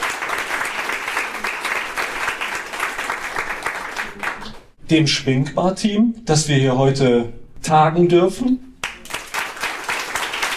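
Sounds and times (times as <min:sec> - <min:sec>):
audience applause: 0:00.0 - 0:04.7, 0:08.8 - 0:10.5
speech: 0:04.9 - 0:08.7.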